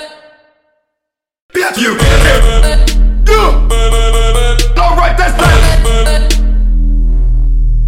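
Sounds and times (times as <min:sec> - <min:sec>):
trap music: 0:01.5 - 0:07.7.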